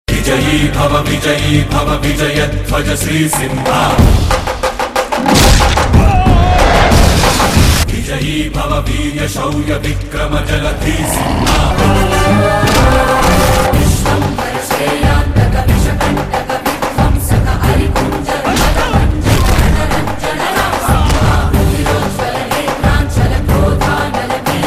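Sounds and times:
background music: 0:00.1 - 0:24.6.

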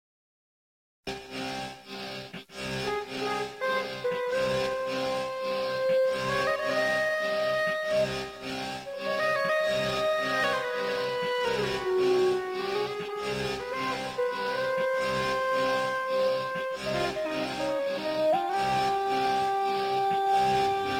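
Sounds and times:
musical instruments playing: 0:02.6 - 0:20.9.

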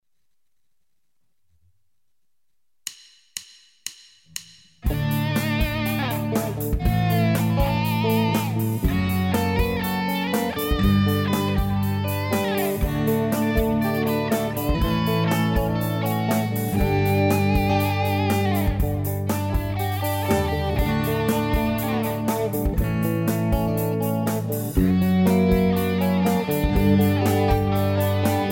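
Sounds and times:
lead guitar: 0:04.9 - 0:28.5.

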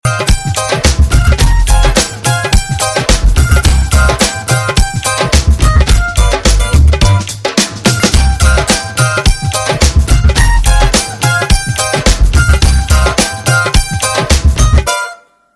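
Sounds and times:
background music: 0:00.0 - 0:15.5.

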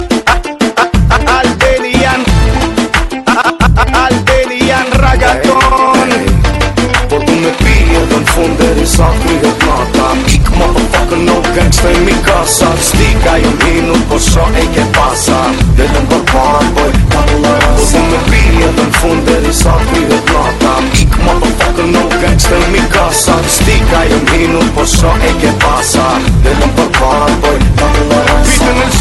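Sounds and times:
Albanian reggaeton music: 0:00.0 - 0:29.0.

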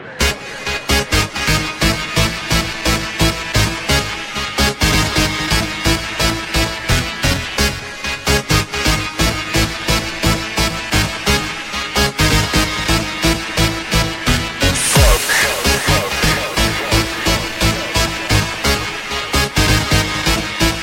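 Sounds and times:
funk music: 0:00.0 - 0:20.8.

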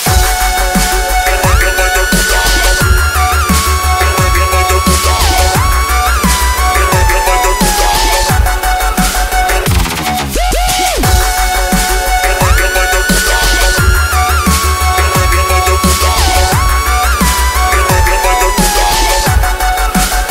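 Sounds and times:
dubstep synth tone: 0:00.0 - 0:20.3.

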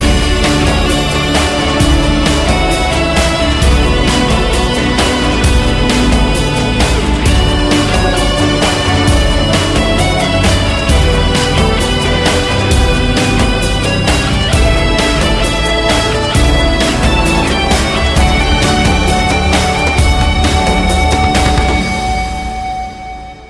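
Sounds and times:
victory music: 0:00.0 - 0:23.4.

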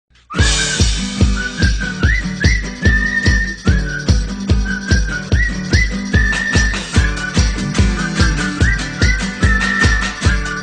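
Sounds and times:
person whistling: 0:00.2 - 0:10.6.

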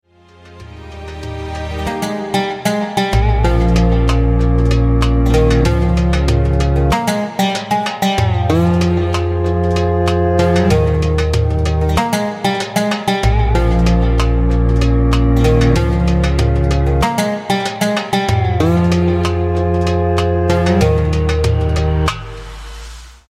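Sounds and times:
acoustic music: 0:00.1 - 0:22.8.

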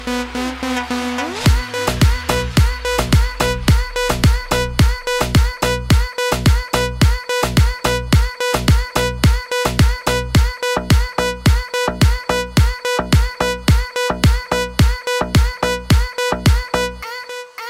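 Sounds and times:
Arabic music: 0:00.0 - 0:17.6.

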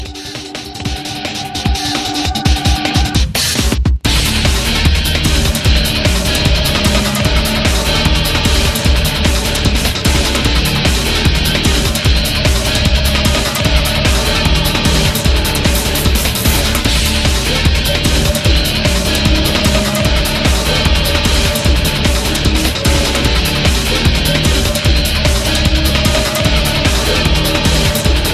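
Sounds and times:
battle music: 0:00.0 - 0:28.3.

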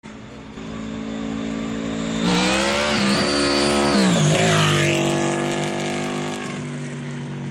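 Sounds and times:
supercharged Vmax motorcycle flyby: 0:00.1 - 0:07.5.

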